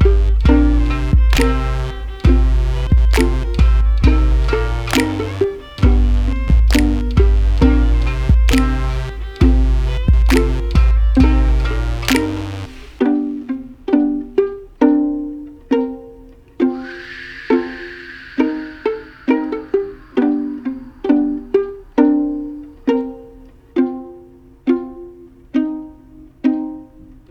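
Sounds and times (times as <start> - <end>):
low fiddle mix in G minor: 0.0 - 27.2.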